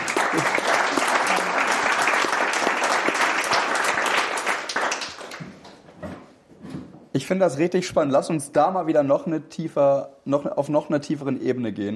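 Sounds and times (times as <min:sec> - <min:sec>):
applause: 0:00.0 - 0:05.8
speech: 0:07.2 - 0:11.9.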